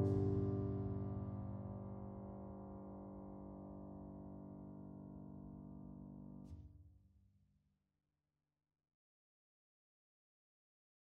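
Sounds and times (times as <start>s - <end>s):
piano: 0.0s - 6.6s.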